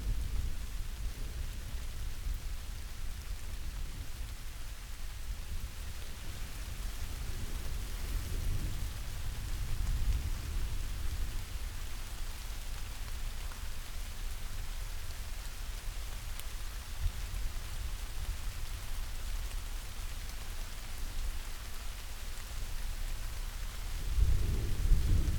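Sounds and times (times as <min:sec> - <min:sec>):
rain: 0:00.0 - 0:25.3
thunder: 0:24.0 - 0:25.3.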